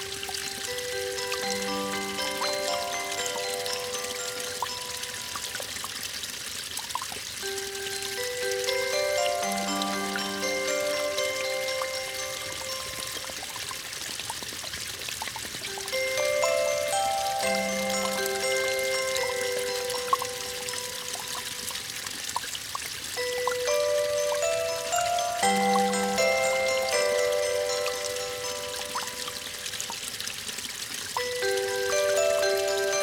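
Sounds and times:
music: 0.0 - 5.8, 7.4 - 13.5, 15.7 - 21.6, 23.2 - 29.8, 31.2 - 33.0
mountain stream flowing: 0.0 - 33.0.

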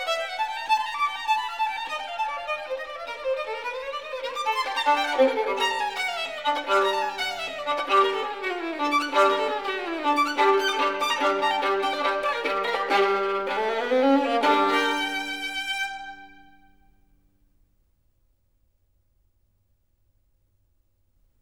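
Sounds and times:
caprice for solo violin in G minor: 0.0 - 16.8.

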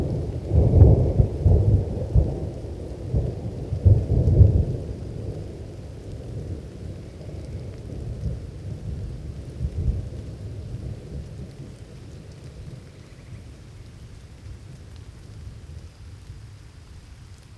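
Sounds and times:
thunderstorm: 0.0 - 13.8.

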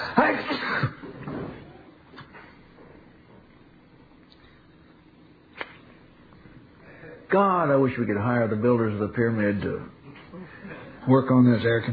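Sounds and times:
loud explosive sneeze: 0.0 - 1.1
speech: 7.3 - 10.0, 11.1 - 11.9.

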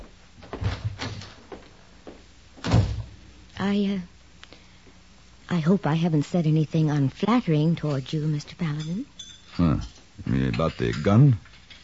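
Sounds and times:
door thud: 2.6 - 3.2
speech: 3.6 - 4.1, 5.5 - 11.8.

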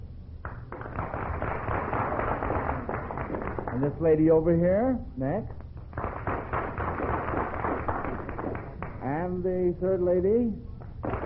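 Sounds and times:
audience applauding: 0.4 - 4.0, 6.0 - 9.0, 11.0 - 11.2
speech: 3.8 - 5.6, 9.3 - 10.7.

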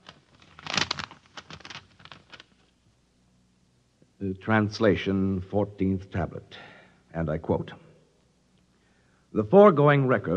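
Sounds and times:
paper envelope being torn open: 0.0 - 2.6
speech: 4.2 - 7.8, 9.3 - 10.3.

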